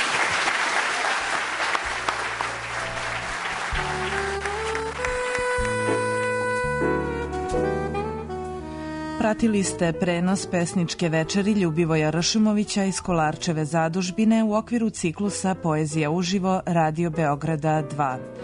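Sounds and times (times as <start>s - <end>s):
audience applause at a poetry evening at the Kolarac Endowment hall in Belgrade: 0.0s - 5.9s
music: 1.3s - 18.4s
speech: 9.3s - 18.4s.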